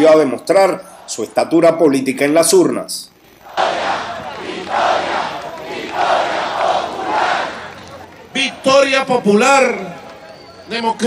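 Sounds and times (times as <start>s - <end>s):
speech: 0.0s - 3.7s, 8.4s - 10.0s, 10.7s - 11.0s
crowd chanting a slogan: 0.6s - 1.7s, 3.4s - 10.6s.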